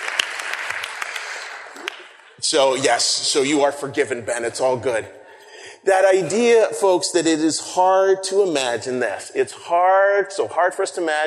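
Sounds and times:
crowd applause: 0.0s - 2.4s
speech: 1.8s - 5.2s, 5.8s - 11.2s.

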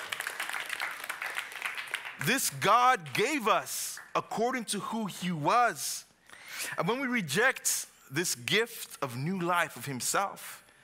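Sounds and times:
audience hand clapping: 0.0s - 4.3s
speech: 2.2s - 10.6s.

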